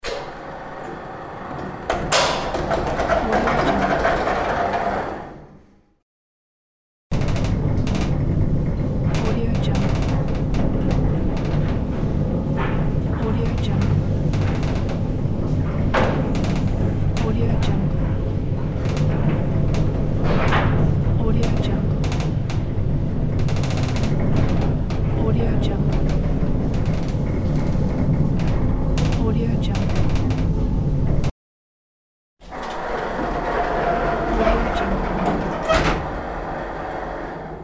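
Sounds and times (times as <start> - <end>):
elevator: 0.0 - 5.9, 7.1 - 31.3, 32.4 - 37.6.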